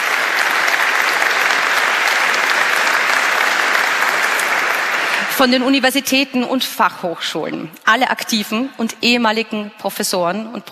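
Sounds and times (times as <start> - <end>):
audience applause: 0.0 - 5.6
speech: 5.4 - 10.7.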